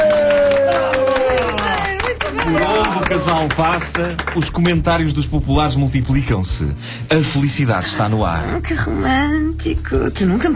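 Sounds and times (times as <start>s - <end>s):
restaurant crowd clapping: 0.0s - 5.4s
speech: 3.1s - 10.5s.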